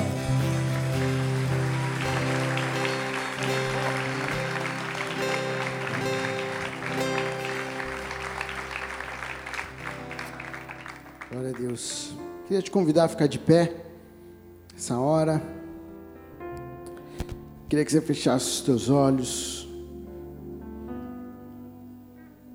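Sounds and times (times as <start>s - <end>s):
audience applauding: 0.0s - 12.2s
speech: 11.5s - 13.8s, 14.8s - 15.6s, 17.7s - 19.6s.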